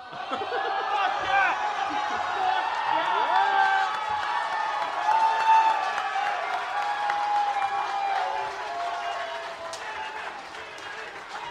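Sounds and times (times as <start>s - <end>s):
laughter: 0.0s - 3.9s
crowd cheering and applauding: 0.0s - 11.4s
speech: 0.1s - 0.9s.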